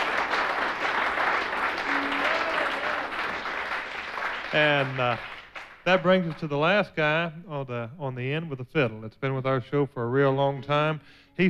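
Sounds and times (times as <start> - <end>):
audience applause welcoming the bass player: 0.0 - 6.3
speech: 4.5 - 11.4.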